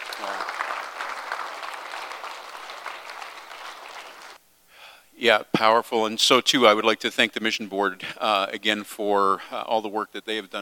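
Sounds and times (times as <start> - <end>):
missions conference audience applause: 0.0 - 4.4
speech: 5.2 - 10.5.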